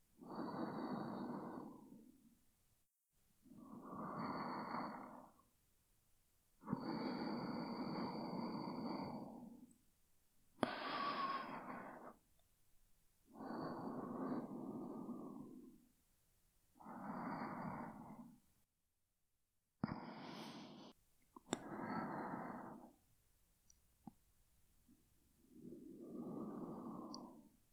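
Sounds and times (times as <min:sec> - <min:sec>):
person breathing in sleep: 0:00.2 - 0:02.4, 0:03.5 - 0:05.5, 0:06.6 - 0:09.7, 0:10.6 - 0:12.2, 0:13.2 - 0:15.9, 0:16.7 - 0:18.4, 0:19.8 - 0:21.0, 0:21.6 - 0:23.0, 0:25.4 - 0:27.6.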